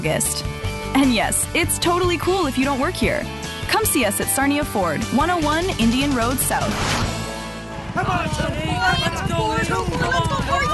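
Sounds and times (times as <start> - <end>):
speech: 0.0 - 7.1, 8.0 - 10.7
harness racing horses galloping: 7.7 - 10.7
dense crowd shouting and cheering: 7.9 - 10.7.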